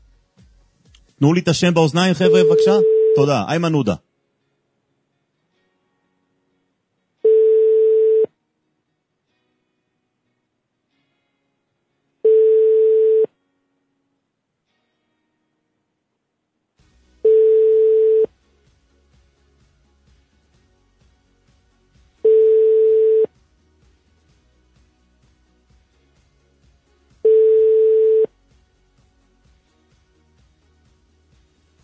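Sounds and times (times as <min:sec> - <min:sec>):
speech: 0:01.2 - 0:04.1
telephone ringback tone on an unanswered call to Ayman Odeh: 0:02.2 - 0:03.4, 0:07.3 - 0:08.3, 0:12.3 - 0:13.3, 0:17.3 - 0:18.3, 0:22.3 - 0:23.3, 0:27.3 - 0:28.3.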